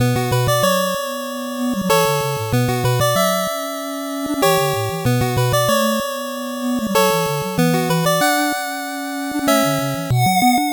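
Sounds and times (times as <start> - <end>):
8-bit background music: 0.0 - 10.6.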